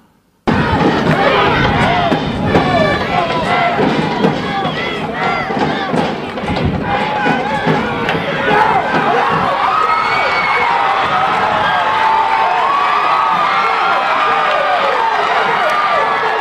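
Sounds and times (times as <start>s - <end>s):
stadium crowd cheering during American football play: 0.5s - 16.3s.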